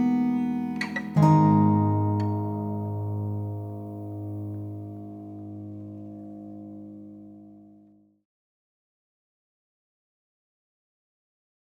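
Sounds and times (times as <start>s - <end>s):
emotional score music: 0.0s - 7.6s.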